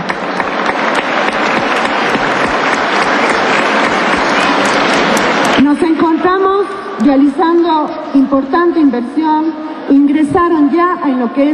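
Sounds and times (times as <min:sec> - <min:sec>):
audience applause: 0:00.0 - 0:05.9
speech: 0:07.0 - 0:11.5.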